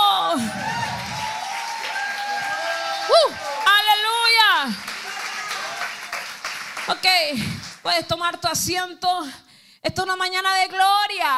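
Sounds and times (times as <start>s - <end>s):
audience shouting and whooping: 0.2s - 3.9s, 4.9s - 6.2s
audience applause: 0.4s - 7.8s
speech: 7.2s - 11.3s.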